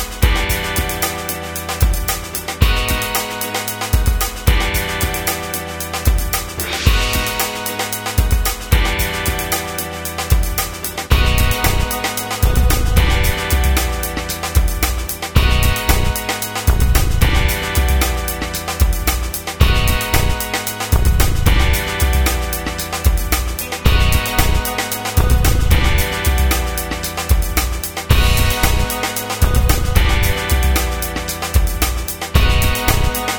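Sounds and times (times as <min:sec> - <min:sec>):
background drums: 0:00.0 - 0:33.3.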